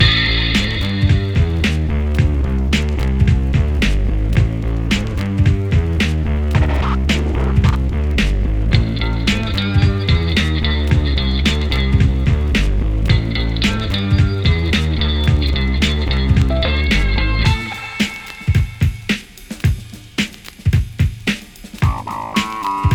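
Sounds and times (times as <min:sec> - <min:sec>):
rock music: 0:00.0 - 0:20.0, 0:21.8 - 0:22.9.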